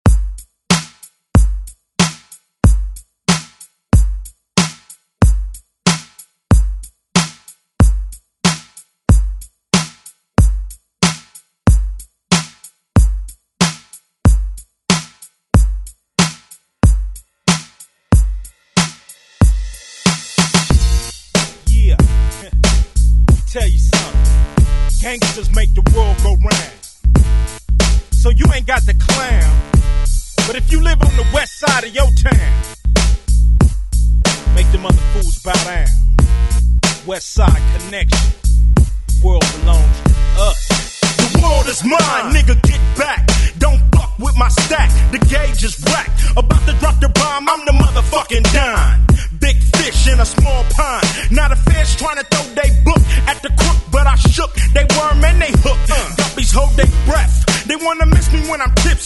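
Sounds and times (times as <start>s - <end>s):
90s drum beat: 0.0s - 59.0s.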